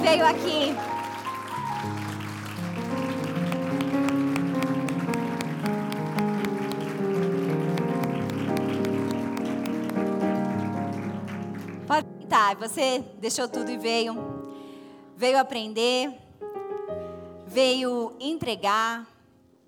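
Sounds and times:
sustained instrumental music: 0:00.0 - 0:15.2
speech: 0:00.1 - 0:00.9, 0:11.9 - 0:14.6, 0:15.2 - 0:16.2, 0:17.5 - 0:19.1
audience applause: 0:00.2 - 0:12.0.

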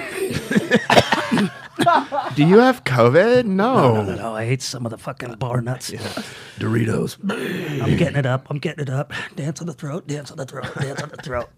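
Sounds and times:
person stifling coughs: 0:00.0 - 0:02.0, 0:10.6 - 0:11.5
laughter: 0:00.0 - 0:02.7, 0:10.5 - 0:11.5
speech: 0:00.7 - 0:11.5.

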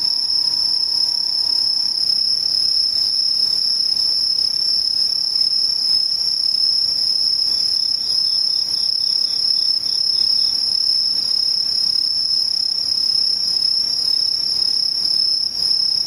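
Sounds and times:
insects: 0:00.0 - 0:16.0.

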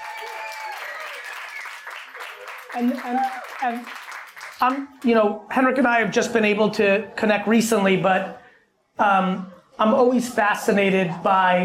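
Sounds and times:
audience applause: 0:00.0 - 0:05.1
speech: 0:02.7 - 0:04.0, 0:04.6 - 0:08.4, 0:09.0 - 0:11.6.

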